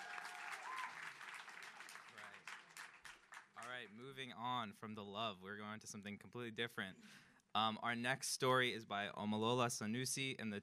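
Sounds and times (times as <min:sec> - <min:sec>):
audience applause: 0:00.0 - 0:03.8
speech: 0:03.8 - 0:10.6.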